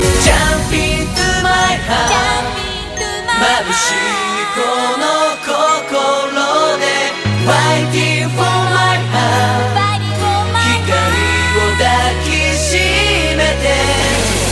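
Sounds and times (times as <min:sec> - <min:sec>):
music: 0:00.0 - 0:14.5.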